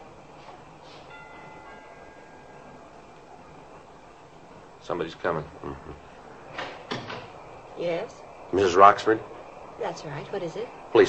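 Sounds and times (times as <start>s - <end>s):
quiet hiss: 0.0s - 11.0s
doorbell chime: 1.1s - 2.8s
speech: 4.9s - 6.1s, 7.8s - 11.0s.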